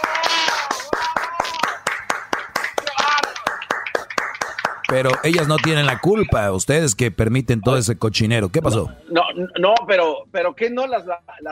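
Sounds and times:
clapping: 0.0 - 6.1
speech: 4.9 - 11.4.

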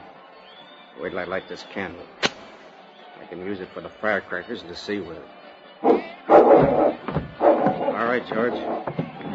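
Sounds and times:
speech: 1.0 - 2.2, 3.2 - 7.1, 8.0 - 9.0
dog barking behind a door: 5.8 - 8.8.

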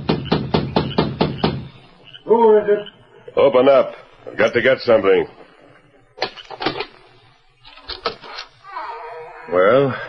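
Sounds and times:
knocking on a wooden door: 0.0 - 1.7
speech: 2.3 - 5.4, 9.5 - 10.0.

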